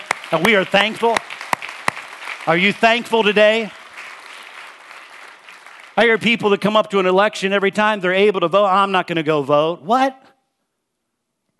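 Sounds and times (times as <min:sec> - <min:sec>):
audience clapping: 0:00.0 - 0:07.2
speech: 0:00.3 - 0:01.3, 0:02.4 - 0:03.8, 0:06.0 - 0:10.3.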